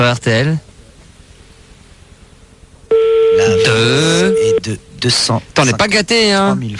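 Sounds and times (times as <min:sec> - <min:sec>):
speech: 0:00.0 - 0:00.7, 0:03.4 - 0:06.7
telephone ringing on a call: 0:02.9 - 0:04.7.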